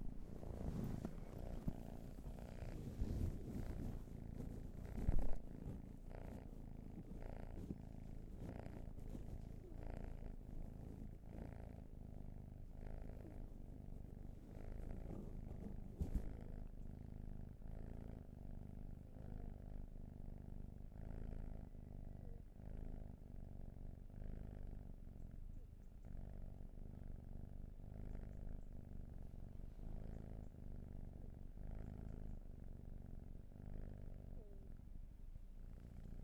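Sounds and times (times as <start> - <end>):
cat purring: 0.0 - 36.2.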